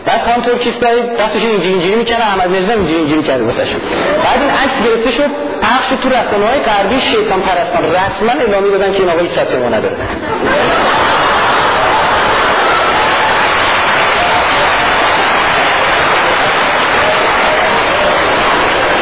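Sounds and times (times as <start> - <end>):
speech: 0.1 - 10.9
laughter: 3.7 - 4.7, 9.9 - 13.0
audience clapping: 10.6 - 19.0.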